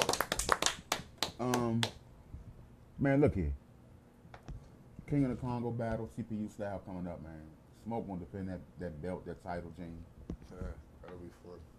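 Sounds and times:
hand clapping for a birthday: 0.0s - 2.0s
speech: 3.0s - 3.6s, 5.1s - 11.7s.

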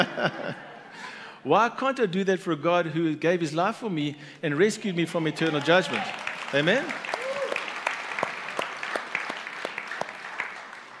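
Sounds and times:
speech: 0.0s - 0.7s, 1.4s - 7.1s
laughter: 0.0s - 1.2s
audience clapping hands: 5.0s - 10.9s.

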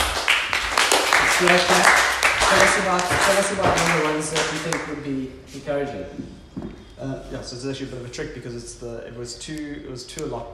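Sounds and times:
group clapping for a person: 0.0s - 5.1s
speech: 1.4s - 10.5s.

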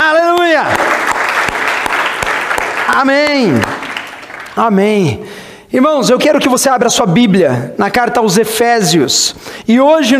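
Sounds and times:
applause: 0.0s - 4.8s
speech: 3.0s - 3.8s, 4.6s - 10.1s.

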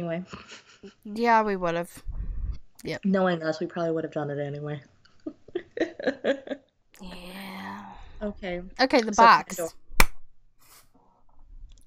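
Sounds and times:
speech: 0.0s - 2.1s, 2.8s - 4.9s, 5.8s - 7.1s, 8.2s - 9.8s
laughter: 5.3s - 6.6s
hand clap close to microphone: 10.0s - 10.2s.

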